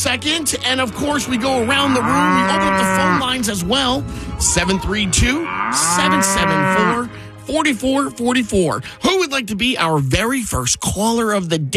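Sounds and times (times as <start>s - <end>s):
speech: 0.0s - 11.7s
cow mooing: 0.5s - 3.5s, 4.5s - 7.1s.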